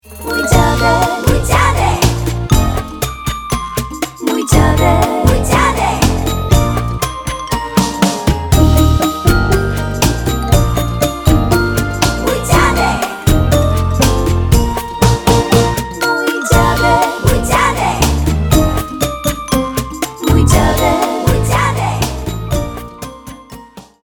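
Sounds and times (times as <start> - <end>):
instrumental music: 0.0 - 24.0.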